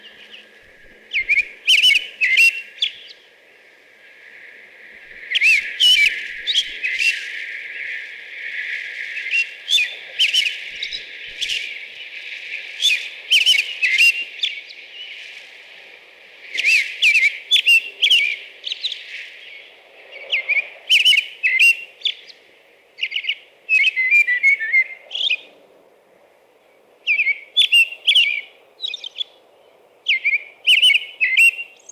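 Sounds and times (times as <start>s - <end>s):
American robin caroling whistles: 0.0s - 3.2s, 5.0s - 7.4s, 9.1s - 11.7s, 12.8s - 14.6s, 16.5s - 19.0s, 20.3s - 22.3s, 23.0s - 25.5s, 27.1s - 29.4s, 30.1s - 31.9s
steady low hiss: 0.0s - 31.9s.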